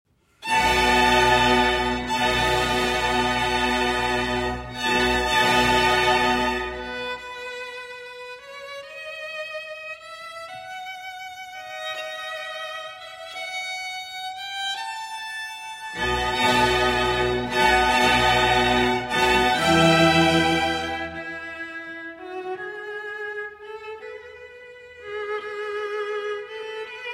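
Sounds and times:
concerto for four violins: 0.4s - 9.5s, 15.8s - 27.1s.

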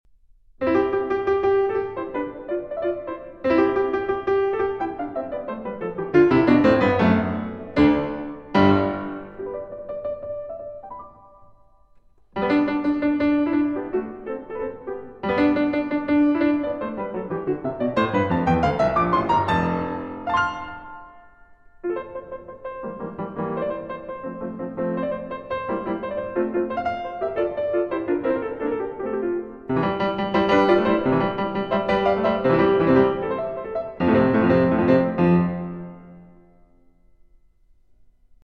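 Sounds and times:
fast classical piece in C major: 0.6s - 36.6s.

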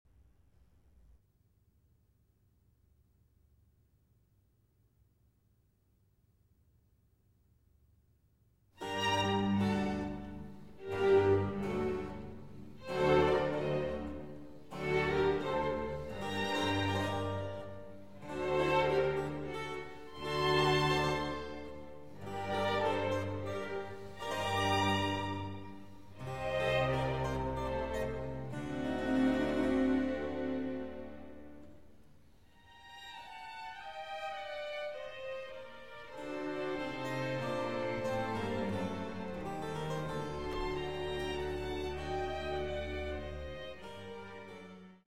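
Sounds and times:
violin with string orchestra: 8.8s - 31.9s, 32.5s - 45.0s.

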